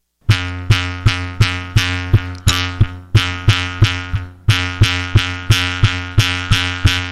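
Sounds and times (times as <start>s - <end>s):
bamboo mouth harp plucked and twanging: 0.3s - 7.0s.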